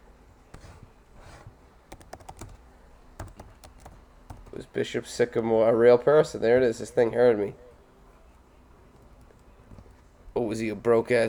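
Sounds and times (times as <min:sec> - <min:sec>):
computer keyboard typing: 0:00.5 - 0:04.7, 0:08.3 - 0:10.1
speech: 0:04.6 - 0:07.6, 0:10.5 - 0:11.2.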